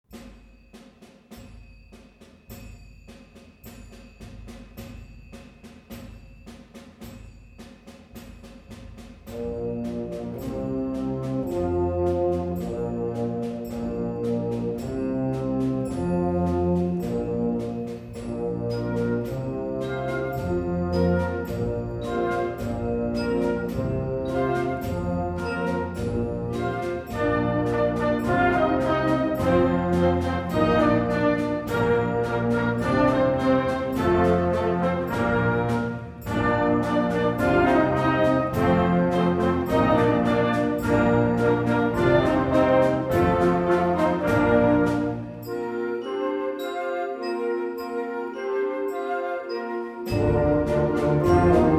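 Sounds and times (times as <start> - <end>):
classical canon: 9.3 - 51.7.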